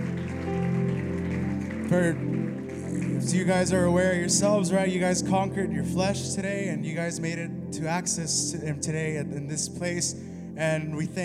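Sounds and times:
audience clapping: 0.0 - 5.0
sustained musical tone: 0.0 - 11.2
speech: 1.9 - 2.4, 3.2 - 11.2.

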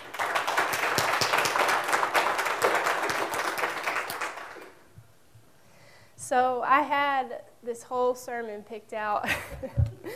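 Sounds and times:
audience applause: 0.0 - 4.8
speech: 6.3 - 10.1.

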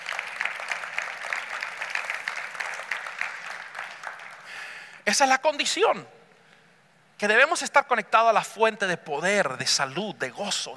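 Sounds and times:
audience applauding loudly: 0.0 - 5.1
speech: 5.1 - 6.2, 7.2 - 10.7.

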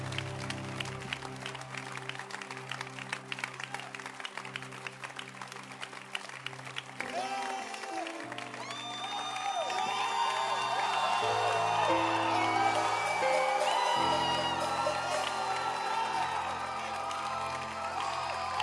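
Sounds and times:
audience hand clapping: 0.0 - 18.6.

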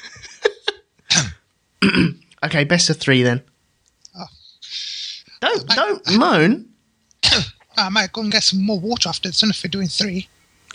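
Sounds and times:
laughter: 0.0 - 0.9
person choking cough after slurping: 1.0 - 2.2, 7.2 - 7.6
speech: 1.2 - 3.5, 5.5 - 6.7, 7.4 - 10.4.

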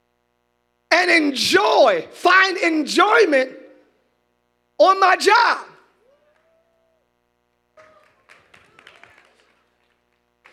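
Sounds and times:
speech: 1.0 - 3.6, 4.8 - 5.7
audience clapping: 7.7 - 10.5.

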